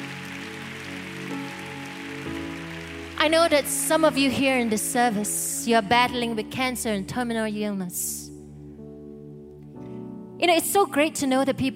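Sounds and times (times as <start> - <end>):
crowd clapping: 0.0 - 5.3
speech: 3.2 - 8.2, 10.4 - 11.7.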